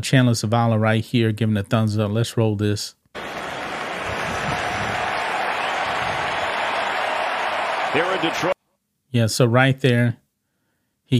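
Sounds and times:
speech: 0.0s - 3.0s, 7.9s - 10.2s
stadium crowd cheering: 3.2s - 8.6s.

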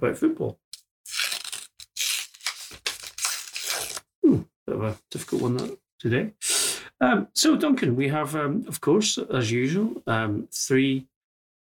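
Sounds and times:
speech: 0.0s - 1.2s, 4.3s - 11.1s
envelope being torn open: 1.0s - 4.0s.

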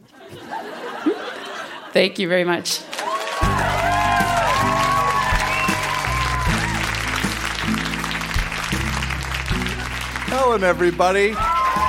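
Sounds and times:
laughter: 0.0s - 1.9s
speech: 2.0s - 3.6s, 10.4s - 11.6s
audience applause: 2.9s - 11.8s.

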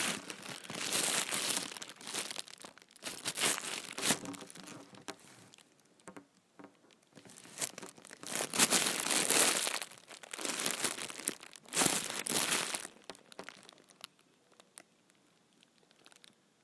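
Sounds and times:
big trash bag crumpled and crinkled: 0.0s - 5.2s, 7.2s - 14.1s.

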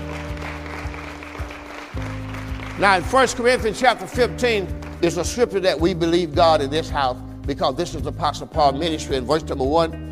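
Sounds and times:
audience clapping hands: 0.0s - 3.4s
speech: 2.8s - 10.0s.

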